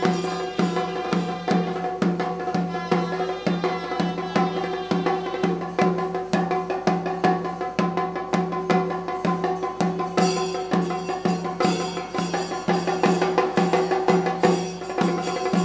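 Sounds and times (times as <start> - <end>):
Panchavadyam temple orchestra fast drum strokes at the Sri Sankarankulangara Temple festival: 0.0 - 15.6.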